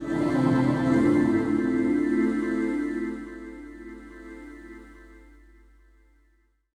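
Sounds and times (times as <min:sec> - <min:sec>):
space synth pad: 0:00.0 - 0:05.8.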